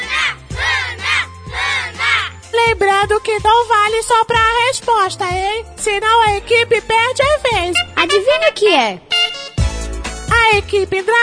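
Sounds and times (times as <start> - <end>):
supporters of a quiz team contestant chanting and cheering: 0.0 - 2.5
speech: 3.0 - 9.1, 10.4 - 11.2.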